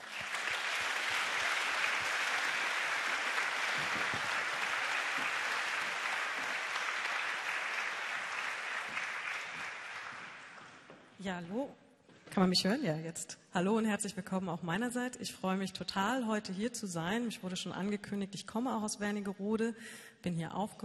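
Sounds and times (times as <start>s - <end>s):
audience applause: 0.0s - 10.9s
speech: 11.2s - 11.8s, 12.4s - 20.8s.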